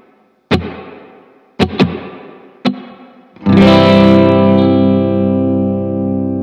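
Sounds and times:
guitar string slaps with hall reverb: 0.5s - 3.6s
strummed guitar chord ringing with long decay: 3.4s - 6.4s.

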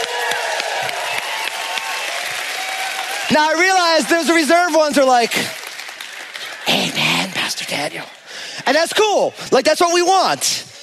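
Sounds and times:
audience cheering and clapping: 0.0s - 7.7s
speech: 3.4s - 5.6s, 7.7s - 10.7s.

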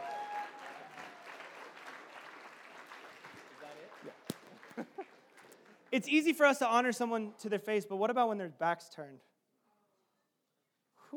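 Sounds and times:
crowd applause: 0.0s - 5.9s
speech: 5.9s - 9.3s.

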